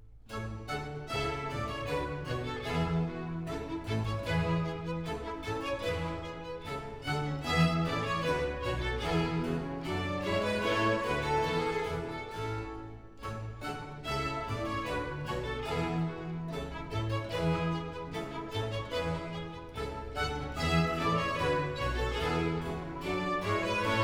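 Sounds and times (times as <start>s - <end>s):
orchestral overture in gavotte form: 0.3s - 24.0s.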